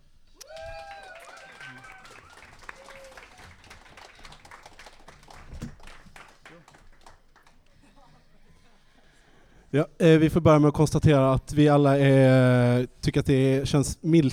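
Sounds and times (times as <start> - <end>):
people shouting and whooping: 0.4 - 4.1
audience applause: 0.4 - 8.2
speech: 9.7 - 14.3.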